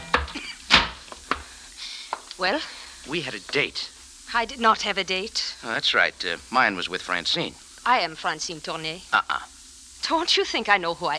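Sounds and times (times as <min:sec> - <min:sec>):
knocking on a hotel room door: 0:00.0 - 0:01.5
speech: 0:02.4 - 0:11.1.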